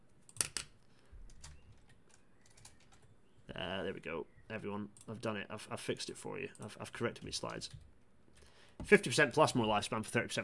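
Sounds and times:
faint typing on a computer keyboard: 0.2s - 3.2s, 6.5s - 8.9s
speech: 3.8s - 8.0s, 8.8s - 10.4s.

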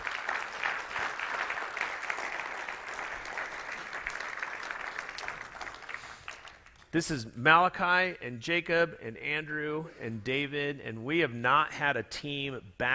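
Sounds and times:
audience applause: 0.0s - 6.8s
speech: 6.9s - 12.9s.

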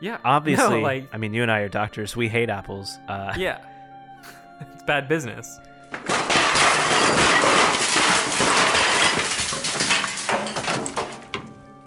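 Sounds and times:
speech: 0.0s - 6.2s
broom knocking over equipment: 5.9s - 11.6s.

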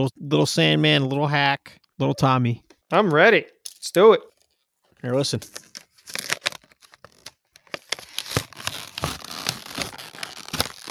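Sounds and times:
speech: 0.0s - 4.3s, 5.0s - 6.2s
plastic action figure packaging crunching as it is pried open: 5.1s - 10.9s.

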